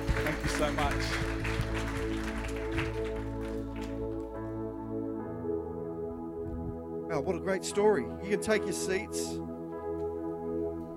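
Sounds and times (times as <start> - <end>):
crowd clapping: 0.0 - 4.4
sustained keyboard chords: 0.0 - 10.9
speech: 0.6 - 1.4, 7.2 - 9.5.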